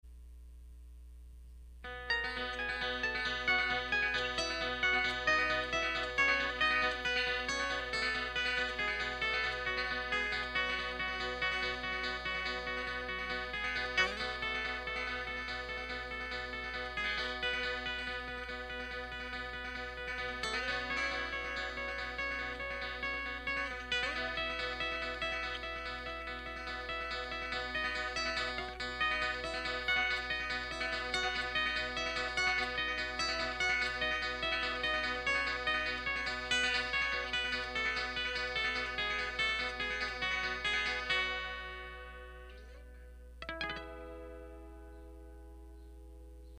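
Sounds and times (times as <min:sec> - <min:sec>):
viola caipira playing: 0:01.9 - 0:45.6.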